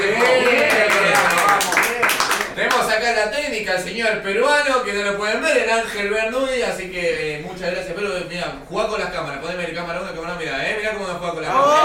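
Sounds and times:
people clapping: 0.0 - 3.0
speech: 3.2 - 11.8.

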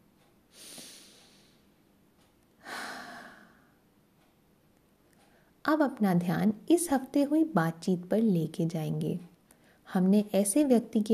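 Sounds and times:
deep breaths during a guided mindfulness meditation: 0.5 - 1.8, 2.6 - 3.8, 9.5 - 9.9
speech: 5.7 - 9.3, 9.9 - 11.1.

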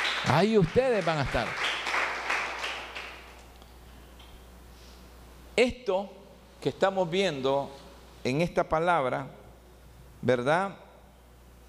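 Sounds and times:
audience applause: 0.0 - 3.3
speech: 0.2 - 1.6, 5.6 - 9.4, 10.2 - 10.8.

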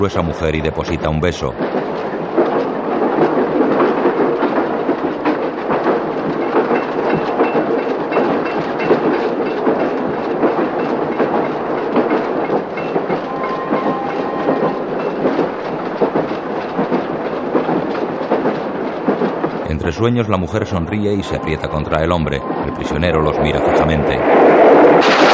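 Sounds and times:
speech: 0.0 - 2.0, 19.9 - 25.3
train crossing a bridge over a river: 0.0 - 25.2.

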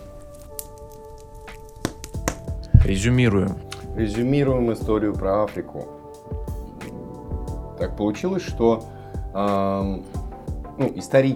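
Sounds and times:
hand clap: 1.5 - 3.0
speech: 2.8 - 6.0, 7.8 - 10.1, 10.8 - 11.3.

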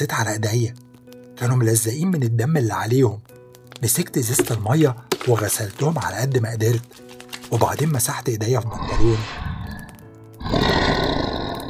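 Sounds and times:
speech: 0.0 - 0.8, 1.4 - 9.5
animal growl swelling into raspy snarl: 8.7 - 11.6.

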